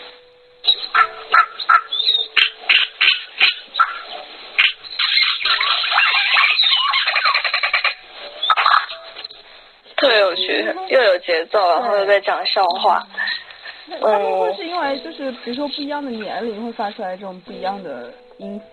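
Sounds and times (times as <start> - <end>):
flock of cacique birds calling: 0.6 - 9.4, 11.6 - 17.8
speech: 10.6 - 13.2, 13.9 - 18.7.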